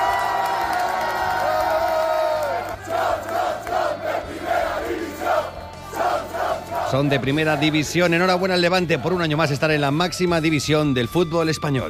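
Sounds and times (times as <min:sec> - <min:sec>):
Levante fans cheering at Manises airport: 0:00.0 - 0:11.8
fans' rhythmic chants and whoops: 0:01.9 - 0:07.9
speech: 0:06.9 - 0:11.8.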